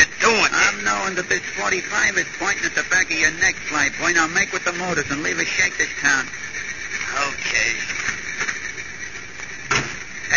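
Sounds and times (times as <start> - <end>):
wind blowing: 0.0 - 10.3
speech: 1.1 - 8.1
door blown open and shut by wind: 9.6 - 10.1.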